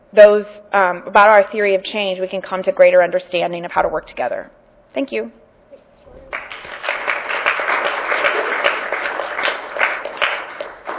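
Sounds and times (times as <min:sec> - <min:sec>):
speech: 0:00.1 - 0:05.4
audience applause for panelists: 0:06.3 - 0:10.9.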